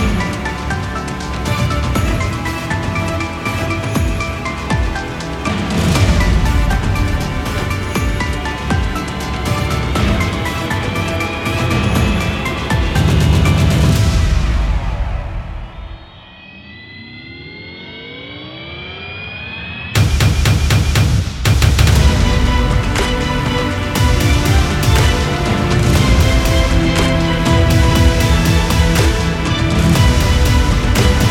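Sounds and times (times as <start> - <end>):
trailer-style arrangement of a Christmas song: 0.0 - 16.4, 20.0 - 31.2.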